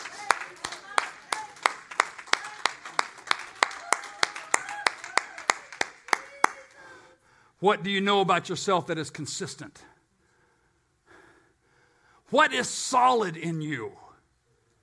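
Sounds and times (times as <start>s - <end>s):
hands clapping: 0.0s - 6.8s
speech: 7.6s - 9.9s, 12.3s - 14.0s.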